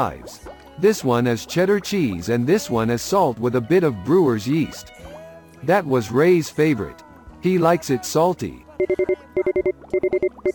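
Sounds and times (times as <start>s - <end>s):
speech: 0.0s - 10.5s
electronic beeps of broadcast signal rebooting: 8.8s - 10.5s.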